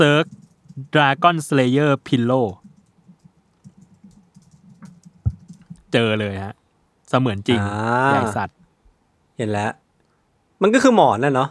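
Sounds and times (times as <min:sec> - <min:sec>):
speech: 0:00.0 - 0:02.6, 0:05.9 - 0:08.6, 0:09.4 - 0:09.8, 0:10.6 - 0:11.4
typing a web search on a computer keyboard: 0:00.0 - 0:06.1.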